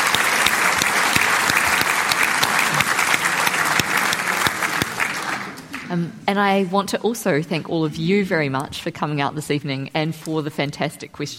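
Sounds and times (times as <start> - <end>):
audience applause: 0.0 - 5.9
speech: 5.9 - 11.3.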